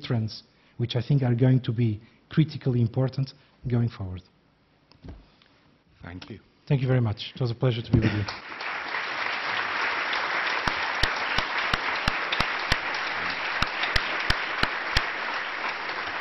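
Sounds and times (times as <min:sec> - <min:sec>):
speech: 0:00.1 - 0:04.3, 0:06.0 - 0:08.7
warm crowd applause: 0:08.0 - 0:16.1
sharp individual claps: 0:08.1 - 0:16.1.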